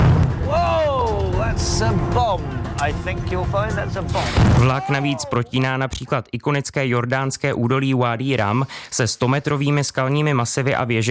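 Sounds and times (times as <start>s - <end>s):
staged explosion in reenacted attack on Ottoman train: 0.0s - 1.0s, 4.1s - 4.9s
people shouting: 0.4s - 1.6s, 4.1s - 5.5s
speech: 1.8s - 11.1s.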